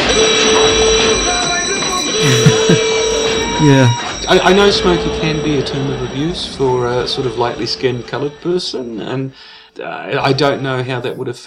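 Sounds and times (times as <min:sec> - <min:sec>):
alarm blaring: 0:00.0 - 0:11.4
laughter: 0:01.8 - 0:05.2
speech: 0:03.6 - 0:11.4.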